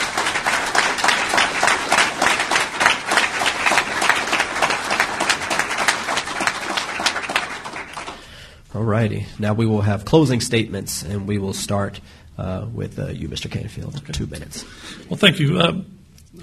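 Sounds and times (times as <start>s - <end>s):
round of applause from a crowd: 0.0s - 8.4s
speech: 8.9s - 16.4s.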